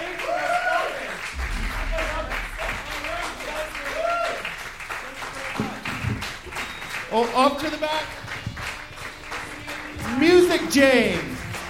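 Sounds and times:
audience applause: 0.0 - 11.6
speech: 7.1 - 8.2, 10.2 - 11.3.

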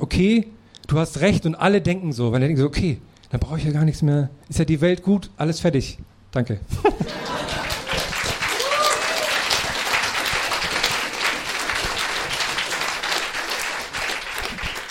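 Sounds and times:
speech: 0.1 - 7.5
laughter: 6.8 - 9.2
audience applause: 7.0 - 14.8.

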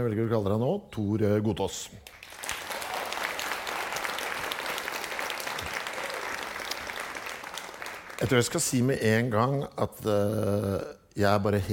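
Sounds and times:
speech: 0.0 - 2.2, 8.2 - 11.7
audience applause: 2.1 - 8.6.

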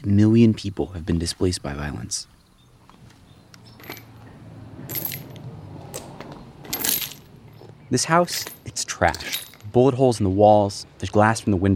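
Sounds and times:
speech: 0.0 - 2.4, 7.9 - 11.7
metal shell casings clinking underfoot: 3.5 - 9.8.

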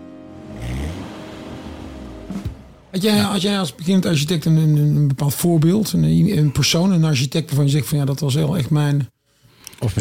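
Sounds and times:
Aston Martin sports car engine revving: 0.0 - 3.2
speech: 2.9 - 9.2, 9.8 - 9.9.

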